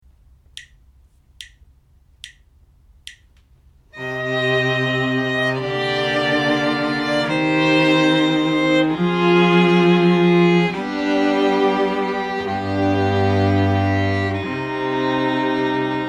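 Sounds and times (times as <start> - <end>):
string quartet playing: 4.0 - 16.0.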